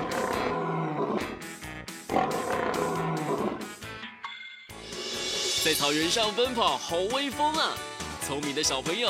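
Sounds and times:
lion roaring: 0.0 - 1.4, 2.1 - 3.7
speech: 5.7 - 9.0.

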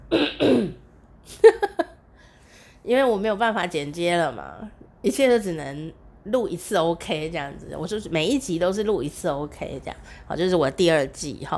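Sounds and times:
person coughing roughly: 0.1 - 0.8
throat clearing: 0.1 - 0.8
speech: 2.9 - 11.5.

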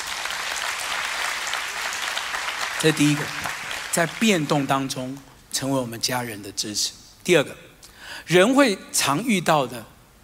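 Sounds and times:
audience applause: 0.0 - 4.9
speech: 2.8 - 9.9.

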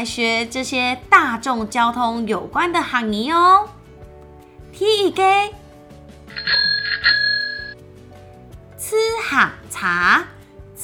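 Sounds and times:
speech: 0.0 - 3.8, 4.8 - 5.6, 8.9 - 10.4
bicycle bell ringing: 6.3 - 7.8.

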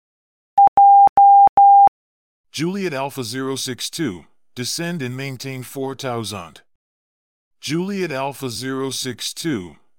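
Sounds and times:
Morse code beeps: 0.6 - 1.9
speech: 2.6 - 6.6, 7.6 - 9.8.

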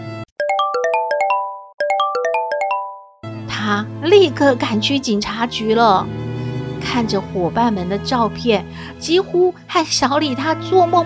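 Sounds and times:
telephone ringing with a melodic electronic ringtone: 0.4 - 3.2
speech: 3.6 - 6.2, 6.8 - 11.0.

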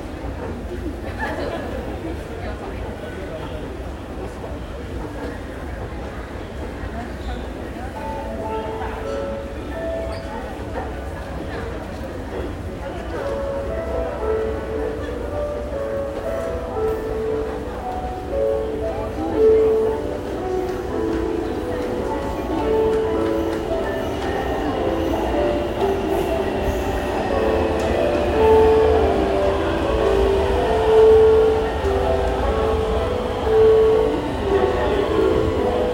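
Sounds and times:
faint voices: 0.0 - 35.9
metro train rumble: 0.0 - 35.9.

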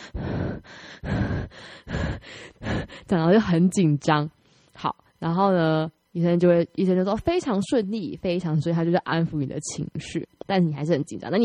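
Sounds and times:
person imitating nervous breathing through a face mask: 0.0 - 3.1
speech: 3.1 - 11.4.

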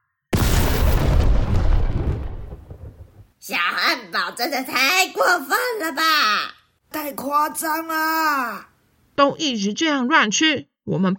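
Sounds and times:
cartoon explosion sound effect: 0.3 - 3.3
speech: 3.5 - 11.1.

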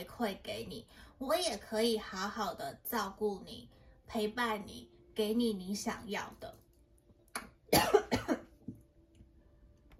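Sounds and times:
speech: 0.0 - 6.6
person coughing after choking: 7.7 - 8.8.

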